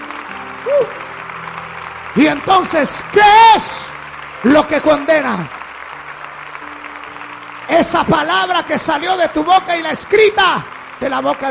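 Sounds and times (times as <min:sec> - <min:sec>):
audience applause: 0:00.0 - 0:11.4
speech: 0:00.6 - 0:01.0, 0:02.2 - 0:03.8, 0:04.4 - 0:05.6, 0:07.7 - 0:11.4.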